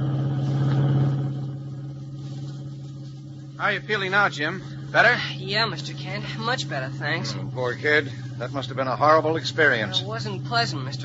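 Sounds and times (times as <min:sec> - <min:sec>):
car engine drone while driving: 0:00.0 - 0:11.0
speech: 0:03.6 - 0:11.0.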